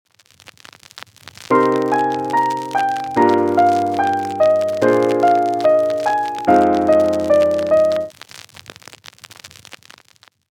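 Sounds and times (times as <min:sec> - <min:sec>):
piano: 0:01.5 - 0:08.1.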